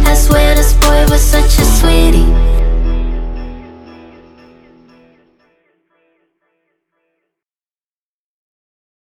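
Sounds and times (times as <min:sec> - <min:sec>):
woman singing mainstream rap hooks: 0:00.0 - 0:03.6.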